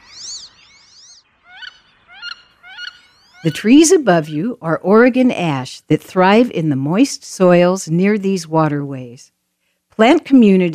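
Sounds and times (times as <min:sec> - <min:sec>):
wood ducks whistling call: 0:00.0 - 0:03.6
speech: 0:03.4 - 0:09.4, 0:10.0 - 0:10.7.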